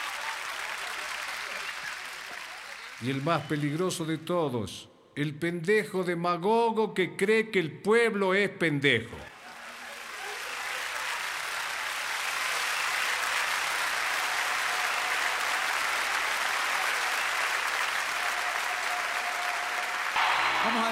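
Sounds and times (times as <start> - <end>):
audience applause: 0.0 - 4.0, 9.3 - 20.9
speech: 3.0 - 9.3.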